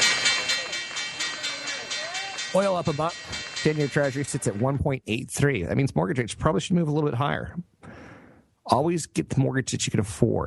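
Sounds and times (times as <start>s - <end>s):
stock exchange opening bell ringing: 0.0s - 4.6s
speech: 2.5s - 7.7s, 8.7s - 10.4s.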